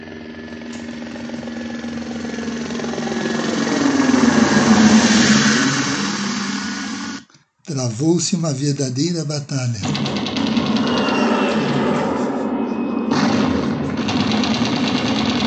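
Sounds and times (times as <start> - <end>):
helicopters: 0.0 - 7.2, 9.8 - 12.5, 13.1 - 15.4
speech: 7.8 - 10.4.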